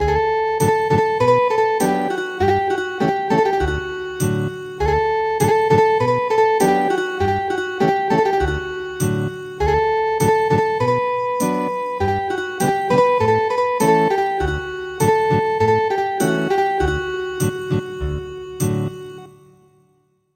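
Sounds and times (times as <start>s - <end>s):
ethnic guitar music: 0.0s - 19.4s.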